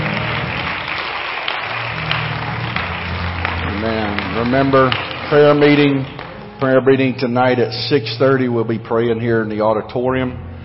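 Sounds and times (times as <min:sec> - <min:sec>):
audience hand clapping: 0:00.0 - 0:06.8
speech: 0:04.4 - 0:10.5.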